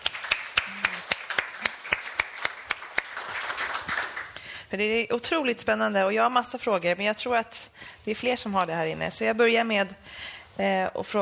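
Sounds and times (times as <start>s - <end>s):
audience applause: 0.0s - 4.4s
speech: 4.7s - 11.1s.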